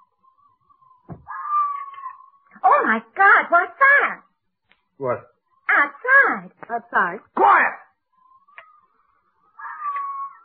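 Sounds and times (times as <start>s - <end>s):
girl screaming outside: 1.2s - 2.2s
speech: 2.9s - 4.2s, 5.0s - 5.3s, 6.3s - 7.8s.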